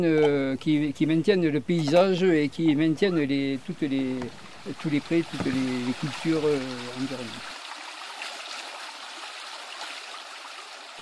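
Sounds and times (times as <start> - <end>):
speech: 0.0 - 7.5
rain falling: 3.3 - 10.2.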